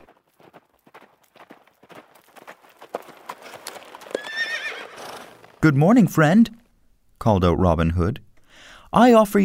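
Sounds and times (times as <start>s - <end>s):
horse pulling a butcher's wagon, hooves clip-clopping: 0.0s - 5.6s
horse whinnying: 4.0s - 5.5s
speech: 5.6s - 6.6s, 7.2s - 8.2s, 8.9s - 9.4s.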